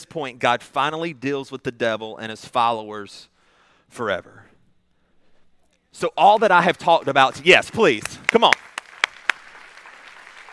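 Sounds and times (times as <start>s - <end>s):
faint hiss: 0.0s - 10.5s
speech: 0.1s - 3.3s, 3.9s - 4.5s, 6.0s - 8.7s
audience sharp crisp claps: 6.2s - 10.5s.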